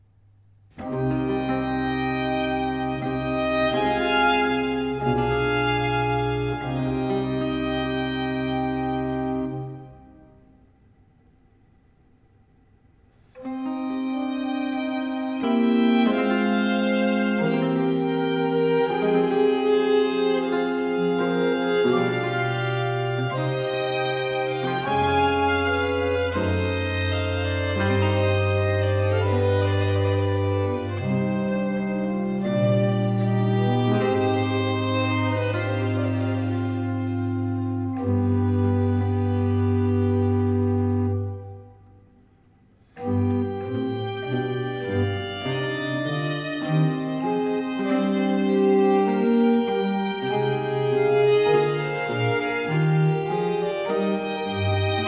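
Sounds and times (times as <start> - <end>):
slow classical sonata movement in D minor: 0.0 - 55.0.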